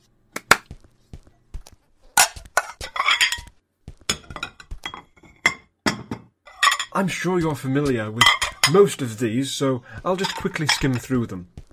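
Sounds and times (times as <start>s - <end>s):
plates being brought out and set down: 2.1s - 7.0s, 8.2s - 8.9s, 10.1s - 11.2s
speech: 7.0s - 11.6s.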